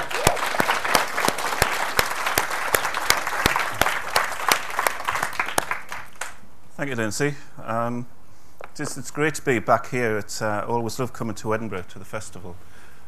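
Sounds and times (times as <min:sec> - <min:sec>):
audience applause at the Edinburgh literary festival welcoming an author: 0:00.0 - 0:06.4
speech: 0:06.8 - 0:08.2, 0:08.8 - 0:12.7.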